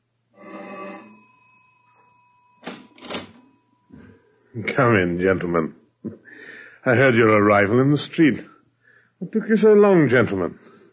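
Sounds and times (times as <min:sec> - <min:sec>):
doorbell buzzing chime: 0:00.4 - 0:04.2
speech: 0:04.6 - 0:06.2, 0:06.8 - 0:08.5, 0:09.2 - 0:10.9.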